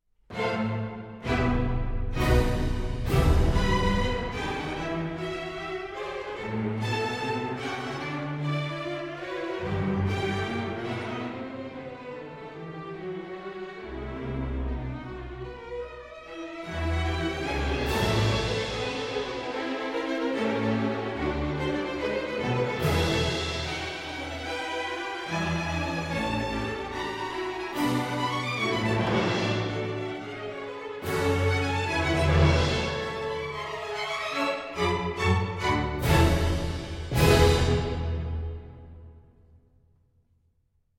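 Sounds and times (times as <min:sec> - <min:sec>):
strings: 0:00.3 - 0:39.4
percussion: 0:01.2 - 0:10.5, 0:16.6 - 0:39.2.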